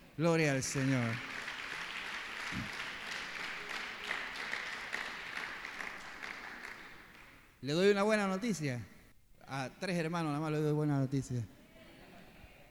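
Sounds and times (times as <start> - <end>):
speech: 0.2 - 1.4, 2.5 - 2.8, 7.6 - 8.9, 9.5 - 11.6
audience applause: 0.6 - 7.3.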